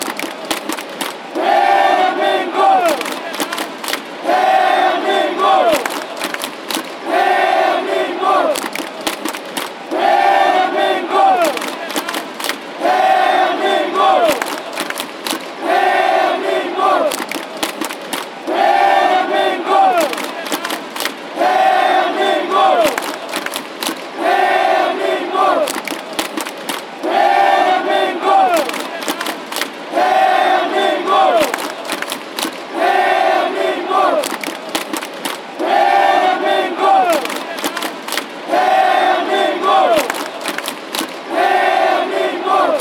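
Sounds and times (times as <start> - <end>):
fans chanting: 0.0 - 42.7.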